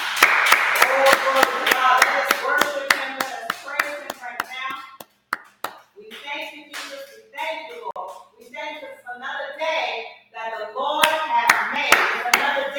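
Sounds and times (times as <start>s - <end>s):
audience clapping hands: 0.0s - 7.2s, 11.0s - 12.6s
speech: 1.2s - 2.9s.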